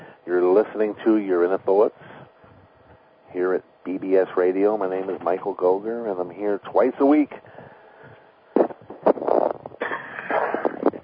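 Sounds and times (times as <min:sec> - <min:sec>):
speech: 0:00.3 - 0:02.1, 0:03.3 - 0:07.5
person clearing throat: 0:09.8 - 0:11.0.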